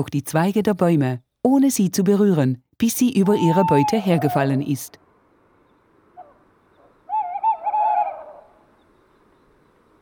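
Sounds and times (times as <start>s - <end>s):
speech: 0.0s - 5.0s
tawny owl calling: 3.2s - 4.8s, 6.2s - 8.9s.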